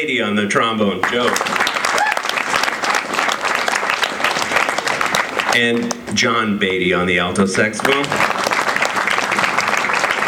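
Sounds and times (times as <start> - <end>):
speech: 0.0 - 1.6, 5.6 - 8.3
audience applause: 1.0 - 6.0, 7.8 - 10.2.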